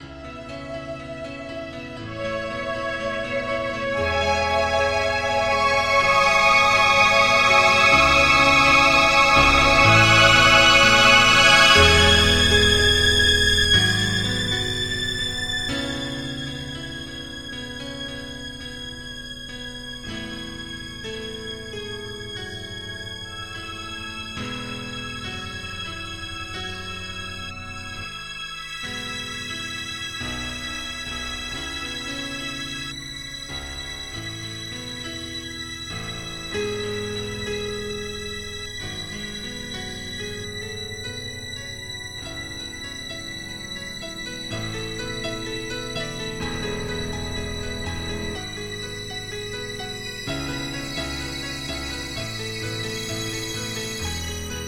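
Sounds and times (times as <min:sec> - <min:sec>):
improvised echoes: 0:00.0 - 0:17.0.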